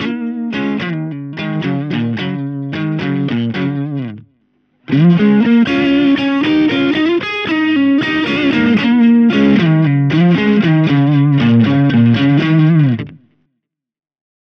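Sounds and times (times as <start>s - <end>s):
electric guitar on neck and middle pickups with boost: 0.0s - 13.4s.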